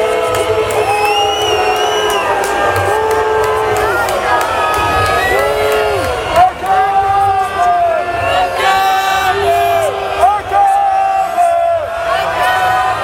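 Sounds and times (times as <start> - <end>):
loud protest crowd shouting and chanting slogans: 0.0 - 13.0
piercing whistles from protest crowd: 0.7 - 2.5.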